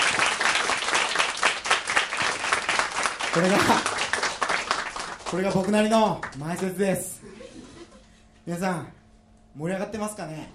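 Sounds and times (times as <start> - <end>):
audience applause: 0.0 - 6.7
speech: 3.4 - 4.0, 5.3 - 7.2, 8.5 - 9.0, 9.6 - 10.5
laughter: 3.4 - 4.1, 7.2 - 8.3.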